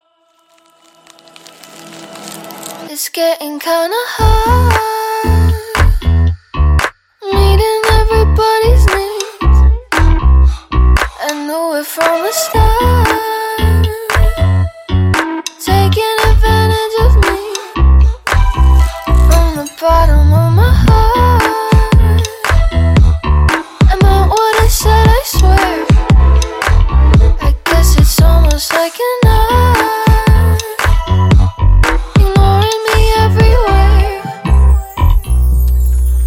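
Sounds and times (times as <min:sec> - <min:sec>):
music: 0:04.2 - 0:36.2.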